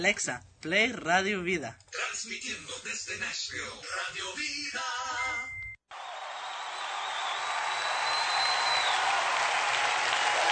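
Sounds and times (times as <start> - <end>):
speech: 0.0 - 5.5
audience applause: 5.9 - 10.5.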